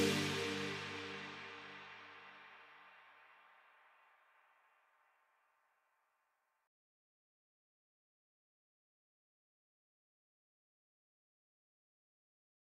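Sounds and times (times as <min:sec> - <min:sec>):
bass remix music: 0:00.0 - 0:01.6.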